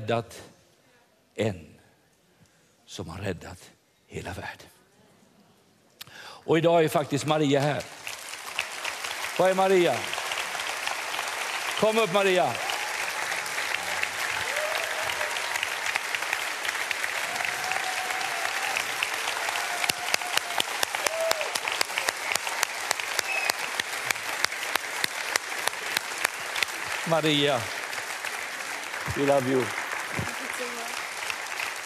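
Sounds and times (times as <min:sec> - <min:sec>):
speech: 0:00.1 - 0:00.5, 0:01.4 - 0:01.7, 0:02.9 - 0:04.8, 0:06.4 - 0:08.0, 0:09.4 - 0:10.2, 0:11.8 - 0:12.6, 0:27.1 - 0:27.8, 0:29.1 - 0:29.8
audience applause: 0:07.4 - 0:31.8.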